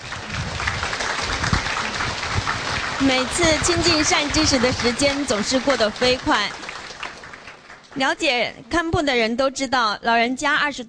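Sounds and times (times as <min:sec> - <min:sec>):
audience applause: 0:00.0 - 0:08.2
speech: 0:03.0 - 0:06.6, 0:08.0 - 0:10.8.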